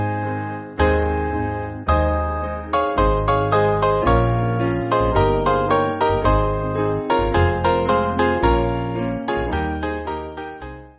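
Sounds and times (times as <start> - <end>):
branle dance tune on piano: 0.0 - 10.9.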